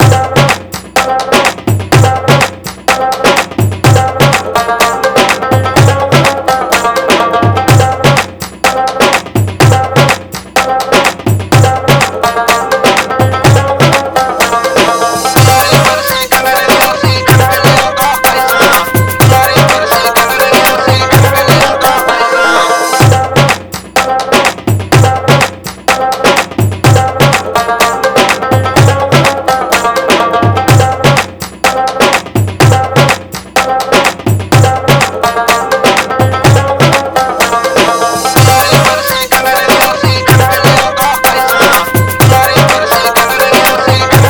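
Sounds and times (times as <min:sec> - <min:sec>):
desi mix instrumental music: 0:00.0 - 0:44.2.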